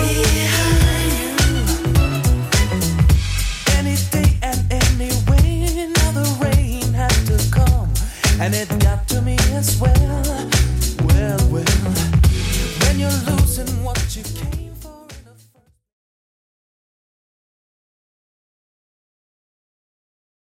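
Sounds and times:
90s pop soul music: 0.0s - 15.4s.

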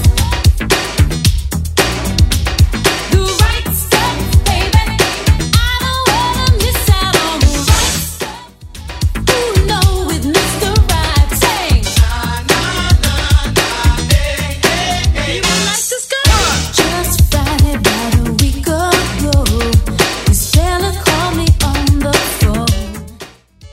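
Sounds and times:
80s DJ-friendly dance beat at 112 bpm: 0.0s - 23.7s.

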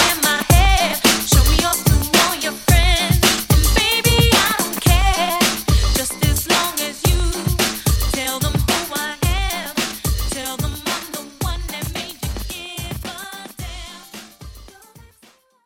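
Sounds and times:
classic drum machine beat at 110 BPM: 0.0s - 15.3s.

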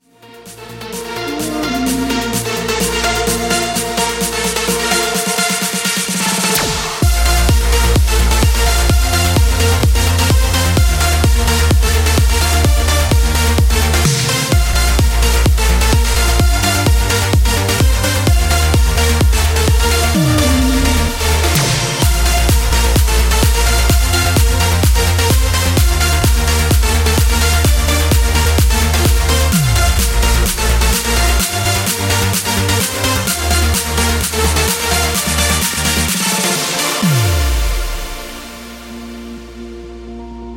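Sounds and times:
festival edit dance music: 0.0s - 39.5s.

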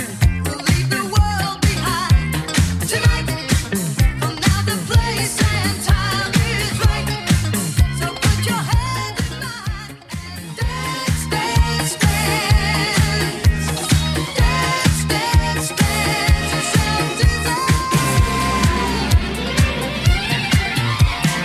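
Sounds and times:
80s style beat at 127 bpm: 0.0s - 21.4s.

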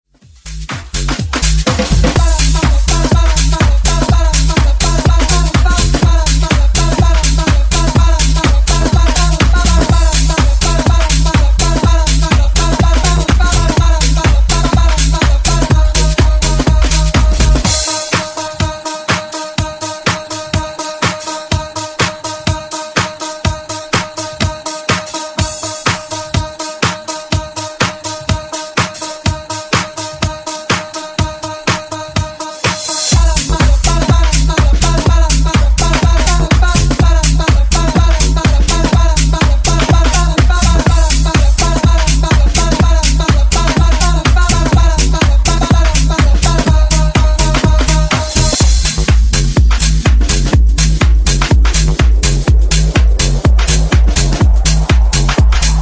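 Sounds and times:
disco funk remix: 0.0s - 55.7s.

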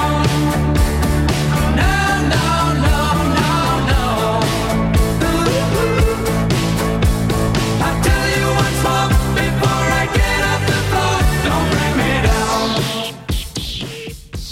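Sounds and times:
70s style drum machine beat: 0.0s - 14.5s.

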